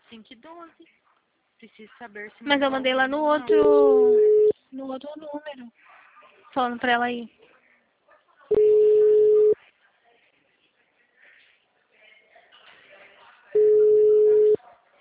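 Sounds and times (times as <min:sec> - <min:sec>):
speech: 0:00.1 - 0:01.0, 0:01.6 - 0:06.0, 0:06.6 - 0:07.4
telephone call tones from a call forwarded to voicemail: 0:03.5 - 0:04.6, 0:08.5 - 0:09.6, 0:13.6 - 0:14.6.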